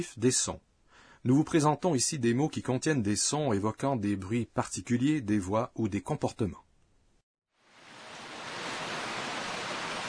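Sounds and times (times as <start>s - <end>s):
speech: 0.0s - 6.6s
heavy rain falling: 7.6s - 10.0s.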